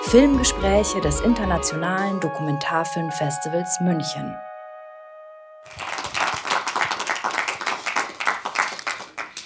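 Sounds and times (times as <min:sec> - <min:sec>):
speech: 0:00.1 - 0:04.5
audience applause: 0:05.7 - 0:09.4.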